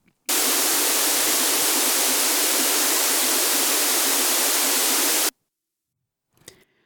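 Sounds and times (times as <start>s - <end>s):
stereo noise test signal with phase-switched channels: 0.3s - 5.3s.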